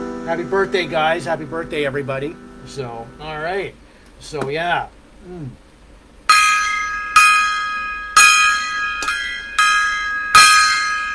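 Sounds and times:
gong struck: 0.0 - 3.8, 6.3 - 11.1
speech: 0.3 - 5.6.

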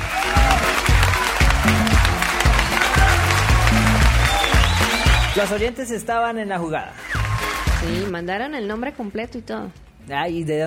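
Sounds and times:
applause: 0.0 - 5.7, 7.0 - 8.1
speech: 5.4 - 7.1, 7.8 - 10.6.

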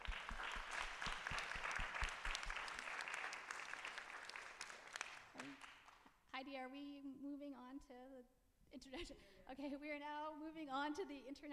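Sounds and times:
round of applause: 0.0 - 6.1
speech: 6.4 - 11.5.

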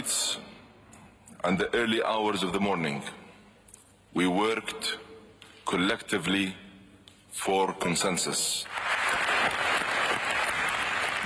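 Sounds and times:
speech: 1.4 - 3.2, 4.1 - 5.0, 5.7 - 6.6, 7.4 - 8.8
ovation with applause: 8.6 - 11.2.

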